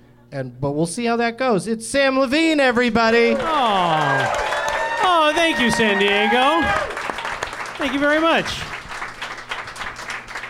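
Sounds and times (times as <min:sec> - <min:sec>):
speech: 0:00.3 - 0:04.5, 0:05.2 - 0:07.0, 0:07.8 - 0:08.7
audience applause: 0:03.1 - 0:10.4.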